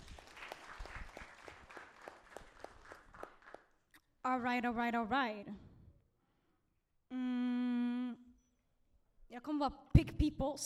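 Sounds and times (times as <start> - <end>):
audience applause: 0.0 - 3.8
speech: 4.3 - 5.6, 7.1 - 7.4, 9.6 - 10.6.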